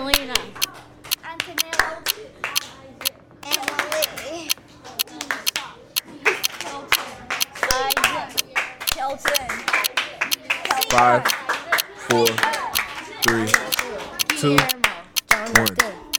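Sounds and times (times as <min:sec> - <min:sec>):
children clapping the rhythms of their names: 0:00.0 - 0:16.1
speech: 0:10.9 - 0:11.4, 0:12.1 - 0:12.5, 0:13.2 - 0:13.6, 0:14.4 - 0:14.8.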